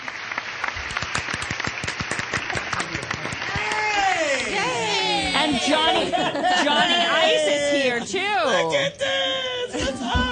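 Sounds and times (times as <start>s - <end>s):
applause sound effect: 0.0s - 4.3s
laughter: 2.5s - 10.2s
speech: 5.5s - 10.2s.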